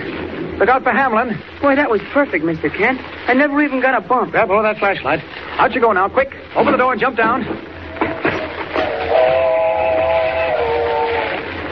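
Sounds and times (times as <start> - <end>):
speech: 0.6 - 8.4
train rumbling on rails: 6.6 - 11.7
multi-toned train whistle: 8.7 - 11.5.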